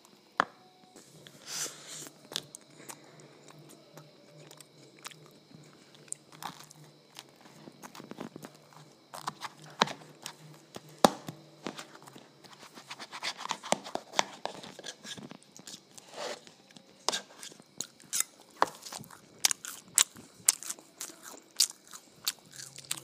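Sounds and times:
faint high whine: 0.0s - 23.0s
someone eating ice cream and waffles: 2.0s - 23.0s.

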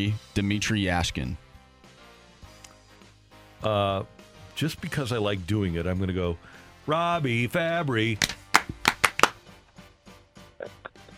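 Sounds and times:
speech: 0.0s - 1.5s, 3.6s - 8.4s
hand clapping: 8.2s - 9.4s.

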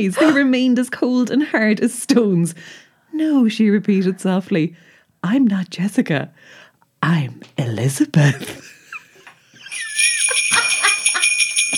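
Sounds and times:
speech: 0.0s - 8.7s
laughter: 8.2s - 11.7s
bells jingling: 9.6s - 11.7s.

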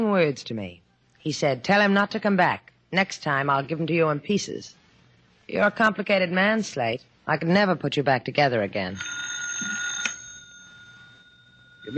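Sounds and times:
speech: 0.0s - 4.8s, 5.5s - 9.8s
telephone ringing: 8.9s - 11.9s.

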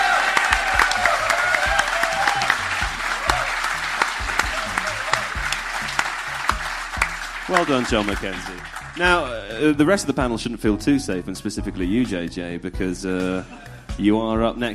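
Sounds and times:
audience applause: 0.0s - 9.3s
speech: 7.5s - 14.7s.

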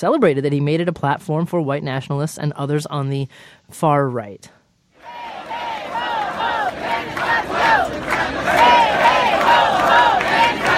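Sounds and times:
speech: 0.0s - 4.6s
protest crowd chanting: 5.0s - 10.7s.

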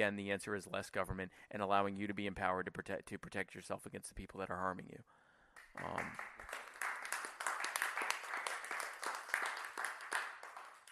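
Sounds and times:
speech: 0.0s - 5.2s, 5.8s - 6.6s
applause sound effect: 5.6s - 10.8s.

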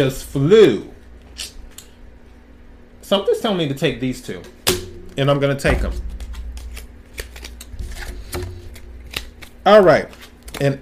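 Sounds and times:
speech: 0.0s - 1.5s, 3.1s - 4.6s, 5.2s - 6.1s, 9.6s - 10.8s
steady low hum: 4.4s - 10.5s
playing cards being gathered up: 5.7s - 10.8s.

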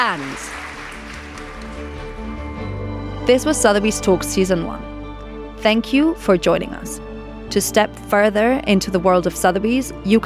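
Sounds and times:
speech: 0.0s - 0.8s, 3.2s - 4.9s, 5.6s - 10.2s
audience applause: 0.0s - 2.4s.

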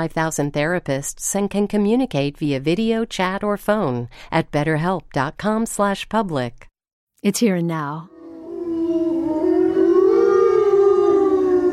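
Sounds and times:
speech: 0.0s - 8.1s
wolves howling: 8.1s - 11.7s.

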